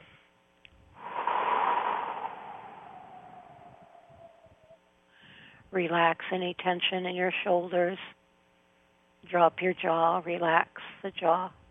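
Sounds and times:
deep cleansing breath during a guided meditation: 1.0s - 5.6s
speech: 5.7s - 8.2s, 9.3s - 11.6s.

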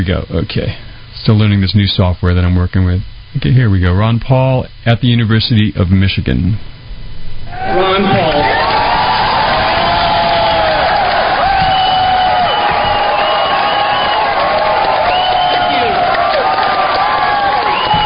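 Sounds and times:
speech: 0.0s - 6.7s, 7.5s - 8.5s
large student crowd cheering: 7.5s - 18.0s.

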